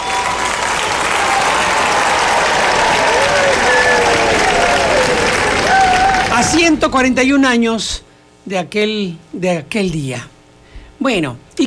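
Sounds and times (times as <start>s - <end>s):
faint cheers and whistles: 0.0s - 6.4s
audience applause: 0.0s - 6.8s
speech: 6.6s - 10.4s, 11.0s - 11.6s.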